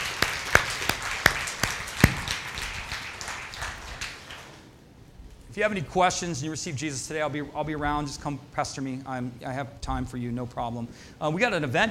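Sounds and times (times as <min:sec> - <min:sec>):
scattered hand claps from a small group: 0:00.0 - 0:04.6
speech: 0:05.6 - 0:11.8.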